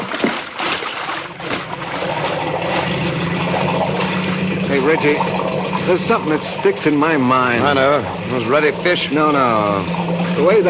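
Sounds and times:
boat motor running: 0.0 - 10.6
speech: 4.9 - 10.6.

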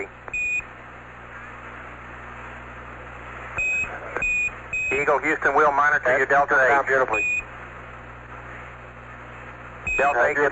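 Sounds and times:
radio static hum and hiss: 0.0 - 10.4
spacecraft high thin alarm beep: 0.4 - 0.6, 3.6 - 5.1, 7.2 - 7.5, 9.9 - 10.2
speech: 5.0 - 7.5, 10.0 - 10.4.

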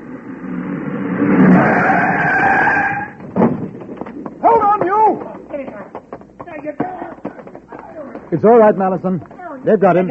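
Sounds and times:
car engine roaring: 0.0 - 4.0
car tires squealing in a skid: 0.4 - 3.2
thud: 3.2 - 3.9
speech: 8.4 - 10.0.

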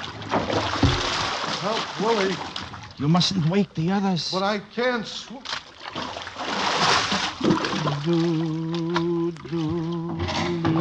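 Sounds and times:
person pushed overboard splashing into water in a radio drama: 0.0 - 2.8, 5.5 - 10.0
speech: 1.6 - 5.5, 8.0 - 10.7.

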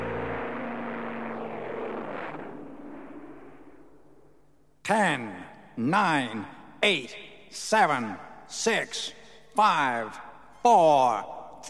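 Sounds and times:
airplane taking off from a runway: 0.0 - 2.5
speech: 4.9 - 11.6.

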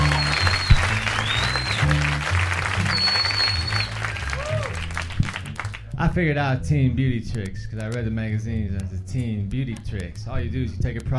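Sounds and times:
crowd round of applause: 0.0 - 5.8
speech: 6.1 - 11.1.

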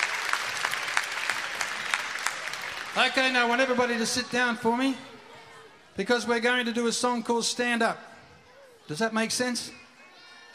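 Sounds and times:
audience applause: 0.0 - 4.4
speech: 3.0 - 5.1, 6.0 - 8.1, 8.9 - 9.8.

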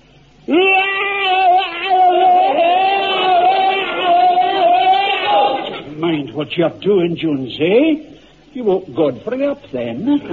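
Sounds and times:
speech: 0.5 - 0.7, 6.4 - 10.3
man doing a bayonet drill battle scream: 0.5 - 5.9.

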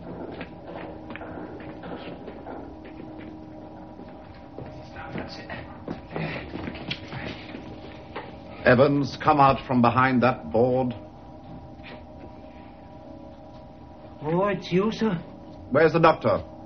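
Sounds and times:
footsteps approaching: 0.0 - 9.7, 10.8 - 14.3
speech: 8.7 - 11.0, 14.5 - 16.5.

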